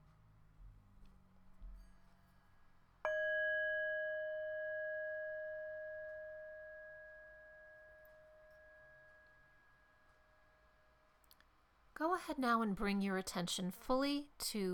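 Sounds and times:
meditation bell ringing: 1.7s - 11.2s
speech: 12.0s - 14.7s.

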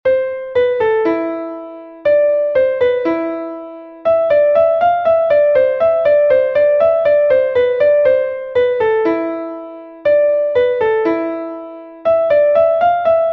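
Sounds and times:
classical piano rondo: 0.1s - 13.3s.

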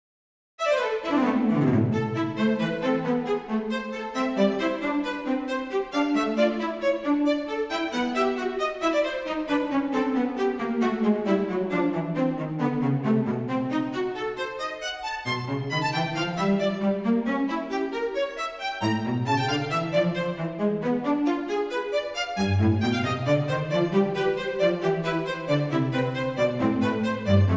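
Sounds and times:
sonata in A minor: 0.6s - 27.5s.

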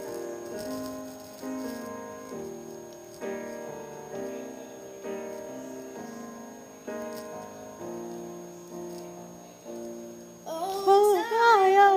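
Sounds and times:
person singing: 10.5s - 11.9s.

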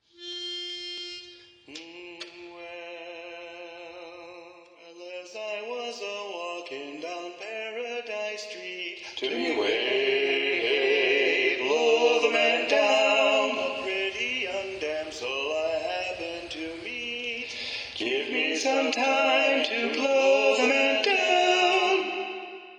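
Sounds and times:
tenor voice: 9.0s - 22.1s.

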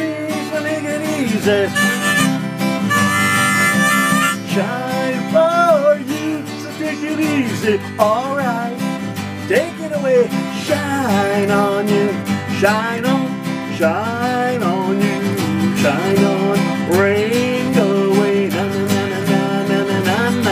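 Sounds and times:
guitar: 0.0s - 20.5s
harmonica: 0.7s - 4.6s.

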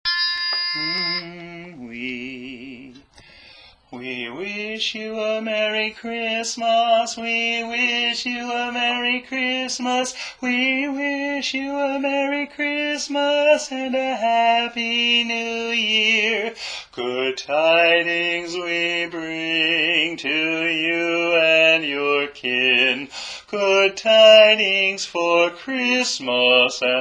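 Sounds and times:
tenor singing: 0.6s - 3.1s, 3.9s - 27.0s.

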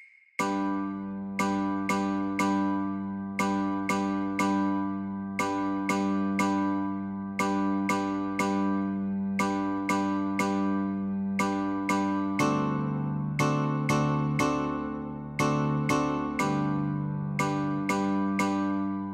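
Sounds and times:
guitar chords: 0.4s - 19.1s.

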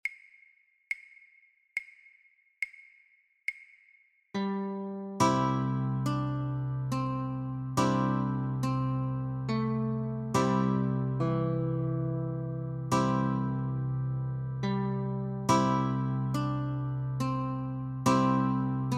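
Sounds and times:
guitar melody: 4.4s - 18.9s.

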